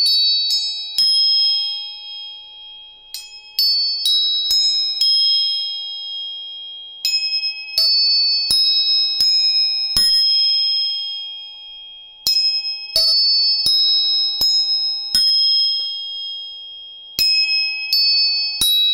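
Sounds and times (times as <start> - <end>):
tuning forks struck and ringing: 0.0 - 18.9.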